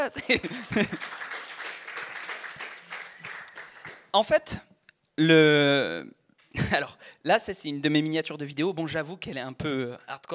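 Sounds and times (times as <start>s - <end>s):
speech: 0.0s - 1.2s, 4.1s - 10.3s
laughter: 0.2s - 1.5s
audience applause: 0.4s - 4.1s.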